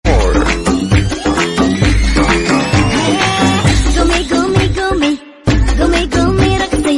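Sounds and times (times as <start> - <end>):
English remix ringtone music: 0.1 - 6.6.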